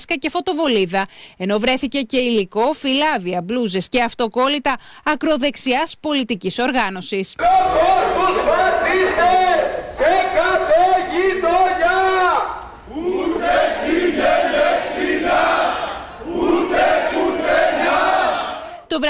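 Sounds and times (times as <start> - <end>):
speech: 0.0 - 12.6
protesters chanting anti-fascist slogans: 7.4 - 18.9.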